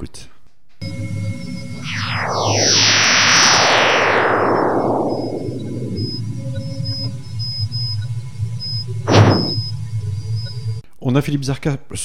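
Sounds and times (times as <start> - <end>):
low hum: 0.8 - 10.8
solar radio burst converted into sound, descending whistling tones: 1.4 - 9.7
speech: 11.2 - 12.0.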